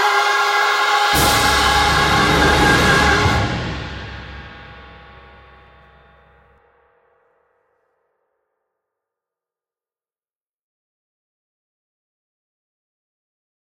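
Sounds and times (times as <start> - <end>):
tenor singing a Christmas carol: 0.0 - 4.4.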